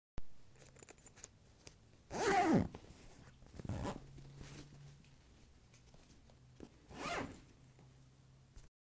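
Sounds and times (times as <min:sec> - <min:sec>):
zipper: 0:02.1 - 0:04.6, 0:06.9 - 0:07.5.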